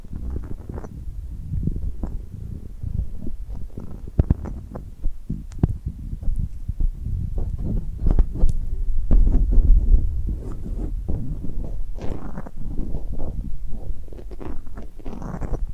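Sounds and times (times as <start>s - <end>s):
glue-covered hands sticking, peeling and rubbing: 3.1s - 15.7s.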